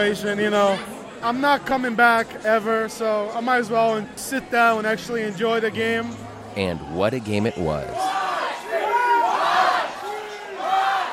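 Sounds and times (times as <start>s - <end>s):
speech: 0.0s - 8.2s
Seahawks fans cheering and whooping at a football game against the Patriots: 8.0s - 11.1s.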